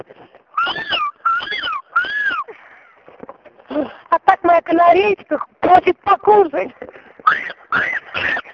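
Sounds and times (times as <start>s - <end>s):
cats yowling under the window: 0.6s - 2.5s
speech: 4.7s - 8.4s.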